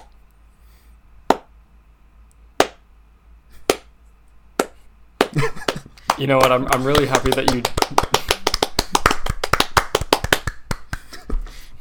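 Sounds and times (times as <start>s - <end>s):
hand clapping: 2.6s - 2.8s, 3.6s - 3.9s, 4.6s - 11.4s
speech: 5.4s - 5.6s, 6.2s - 8.1s.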